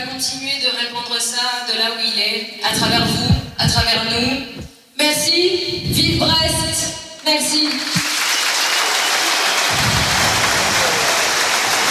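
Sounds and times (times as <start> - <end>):
speech: 0.2 - 8.1
stadium crowd applauding: 7.6 - 11.8.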